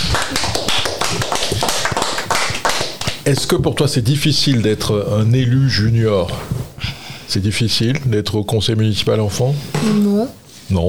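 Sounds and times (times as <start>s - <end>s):
group applause: 0.0s - 3.7s
speech: 3.2s - 6.6s, 7.3s - 10.8s.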